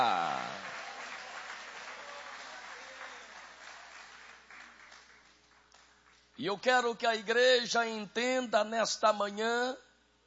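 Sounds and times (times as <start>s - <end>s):
church audience applauding: 0.0s - 5.4s
speech: 6.4s - 9.8s.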